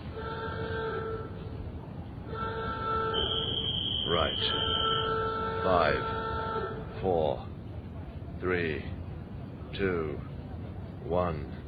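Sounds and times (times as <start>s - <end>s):
warning alarm before chimney demolition: 0.0s - 1.4s, 2.3s - 7.0s
speech: 4.2s - 4.8s, 5.6s - 6.2s, 7.0s - 7.5s, 8.4s - 8.9s, 9.7s - 10.3s, 11.0s - 11.6s.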